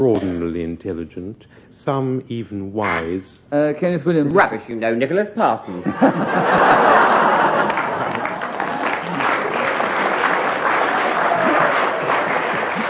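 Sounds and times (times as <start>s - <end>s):
speech: 0.0s - 7.8s
faint laughter: 5.8s - 10.1s, 10.9s - 12.8s
audience clapping: 5.9s - 12.8s.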